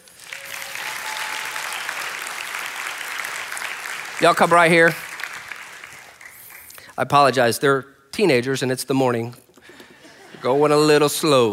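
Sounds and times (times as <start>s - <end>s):
audience applause: 0.0s - 6.9s
speech: 4.2s - 5.0s, 7.0s - 9.4s, 10.4s - 11.5s.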